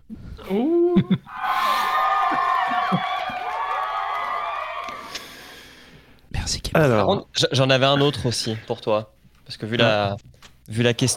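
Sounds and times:
speech: 0.5 - 1.5, 6.8 - 11.1
crowd cheering wildly: 1.3 - 5.6.

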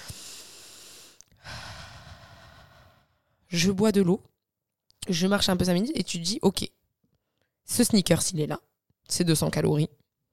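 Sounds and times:
person taking a deep breath: 0.0 - 3.5
speech: 3.5 - 4.3, 5.0 - 6.8, 7.7 - 10.0.

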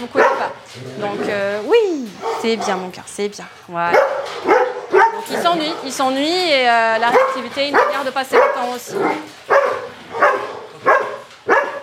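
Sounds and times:
Belgian Malinois barking: 0.0 - 0.6, 2.2 - 2.9, 3.9 - 6.2, 7.0 - 11.8
speech: 0.0 - 1.8, 2.4 - 9.9.

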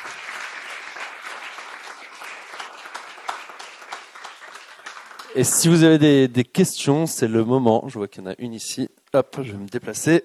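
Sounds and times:
audience applause: 0.0 - 5.8
speech: 5.4 - 10.2.

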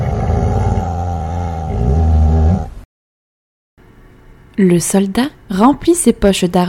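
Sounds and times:
huge dog growling softly: 0.0 - 2.8
speech: 4.6 - 6.6.

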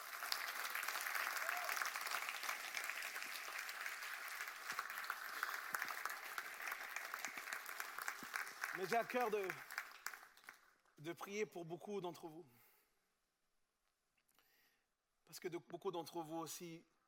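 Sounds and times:
audience applause: 0.0 - 10.6
speech: 8.8 - 9.7, 11.0 - 12.6, 15.3 - 16.9.

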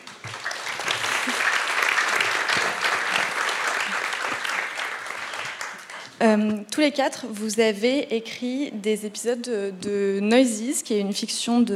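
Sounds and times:
audience applause: 0.0 - 6.0
speech: 6.2 - 11.7.

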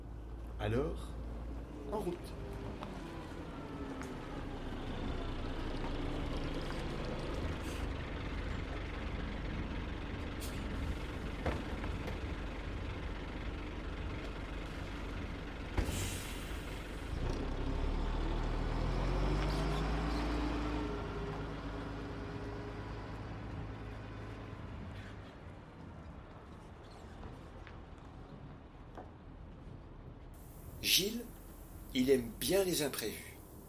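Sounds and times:
bus engine rumbling: 0.0 - 25.7, 30.3 - 33.6
speech: 0.6 - 1.2, 1.9 - 3.0, 30.9 - 31.3, 31.9 - 33.3
bus air brakes hissing: 10.4 - 11.0, 15.8 - 17.0.

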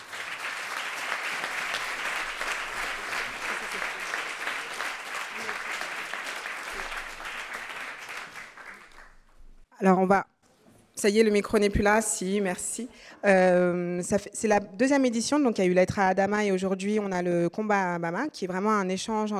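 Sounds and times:
audience applauding: 0.0 - 9.4
speech: 9.8 - 10.3, 11.0 - 19.3.

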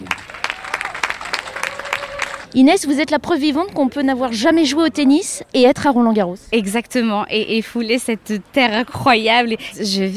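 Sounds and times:
crowd clapping: 0.0 - 2.5
speech: 2.5 - 10.1.

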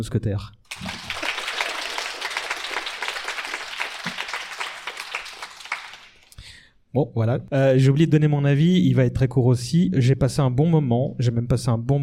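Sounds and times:
speech: 0.0 - 0.9, 6.9 - 12.0
audience clapping: 0.7 - 6.5.

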